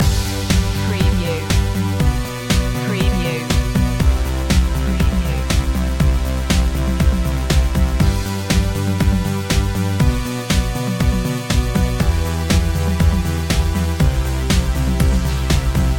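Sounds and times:
music loop: 0.0 - 15.9.

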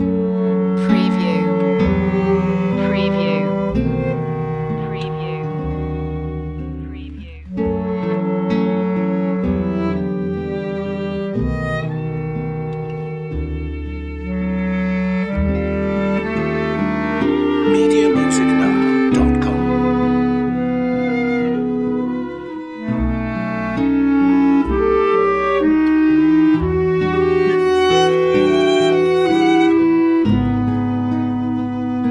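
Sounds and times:
winter melancholy music loop: 0.0 - 32.0.

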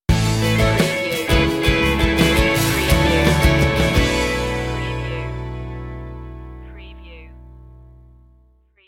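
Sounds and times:
musical stinger: 0.4 - 6.8.

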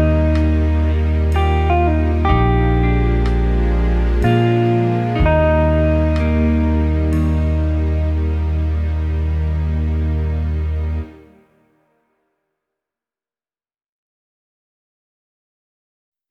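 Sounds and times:
very slow hymn verse: 0.0 - 11.8.

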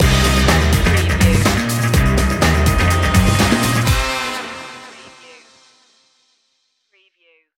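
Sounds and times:
retro quest stinger: 0.0 - 6.0.

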